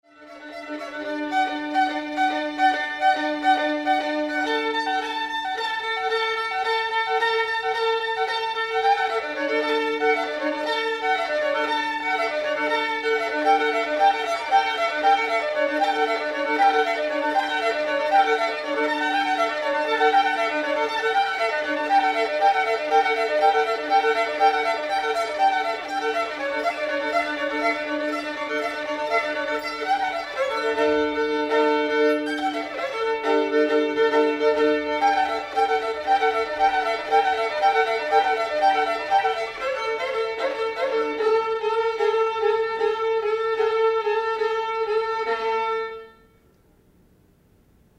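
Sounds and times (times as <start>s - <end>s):
violin: 0.0s - 47.0s.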